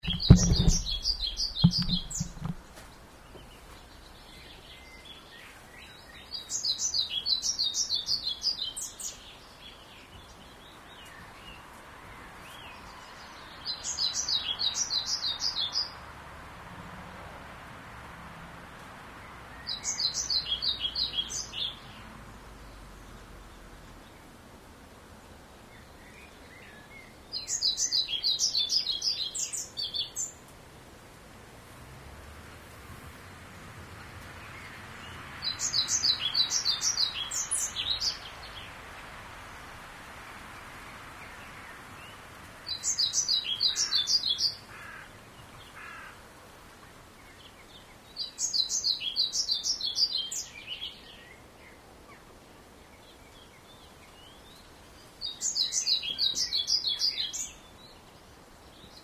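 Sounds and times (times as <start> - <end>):
birds: 0.0 - 16.2, 18.7 - 30.6, 31.6 - 59.0
cars: 11.0 - 24.1, 30.5 - 46.1.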